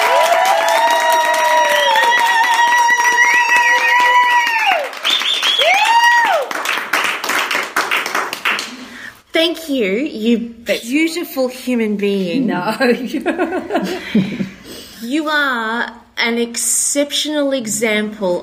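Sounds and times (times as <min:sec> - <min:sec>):
audience applause: 0:00.0 - 0:09.0
speech: 0:09.4 - 0:18.4.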